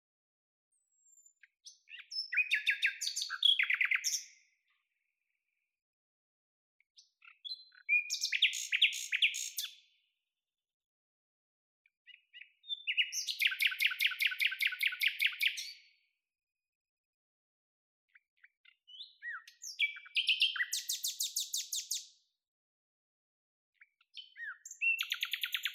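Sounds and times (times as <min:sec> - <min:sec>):
common nightingale singing: 0:01.0 - 0:04.4, 0:07.2 - 0:09.8, 0:12.1 - 0:15.8, 0:18.9 - 0:22.1, 0:24.2 - 0:25.7.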